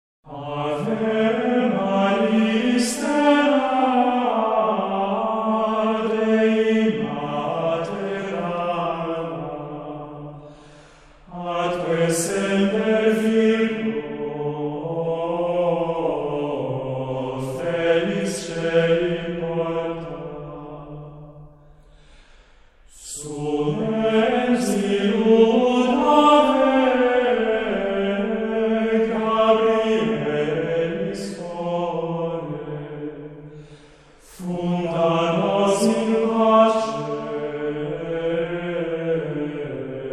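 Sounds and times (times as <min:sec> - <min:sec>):
chant singing: 0:00.2 - 0:21.6, 0:22.9 - 0:40.1.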